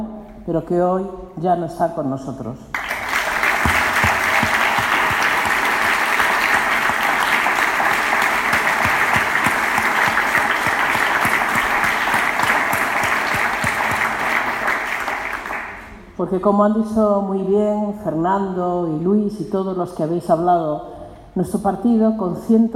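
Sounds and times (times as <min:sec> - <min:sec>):
speech: 0:00.5 - 0:02.8, 0:16.2 - 0:22.7
warm audience applause: 0:02.8 - 0:15.9.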